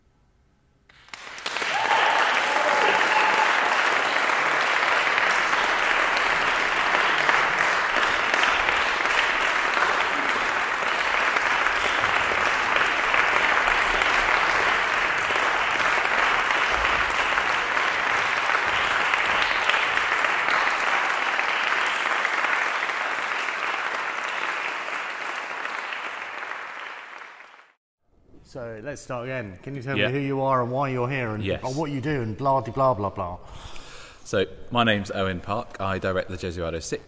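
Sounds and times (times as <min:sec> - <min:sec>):
concert audience applause: 0:00.9 - 0:27.8
speech: 0:28.6 - 0:33.7, 0:34.3 - 0:37.0.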